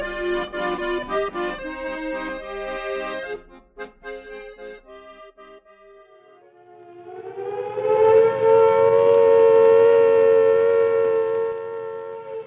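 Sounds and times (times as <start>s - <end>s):
air raid siren wailing: 6.4s - 12.4s.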